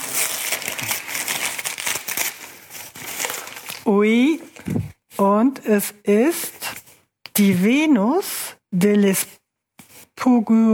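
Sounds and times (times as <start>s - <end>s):
paper wrapping being torn open: 0.0s - 3.9s
speech: 3.9s - 6.5s, 7.4s - 9.4s, 10.2s - 10.7s.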